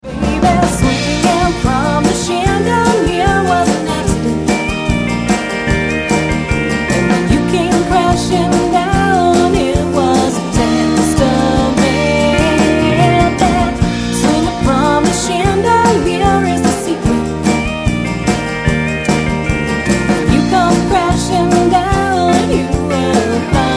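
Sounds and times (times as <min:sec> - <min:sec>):
swing music: 0:00.0 - 0:23.7.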